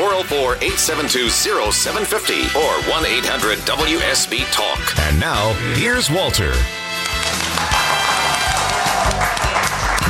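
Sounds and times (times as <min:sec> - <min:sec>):
speech: 0:00.2 - 0:07.4
live audience applauding at the Pike Nursery in Peachtree City: 0:07.0 - 0:10.0.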